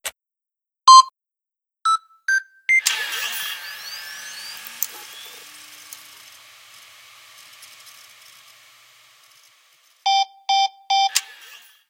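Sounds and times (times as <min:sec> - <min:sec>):
keypad beeps: 0:00.9 - 0:01.1, 0:01.9 - 0:02.9, 0:10.1 - 0:11.2.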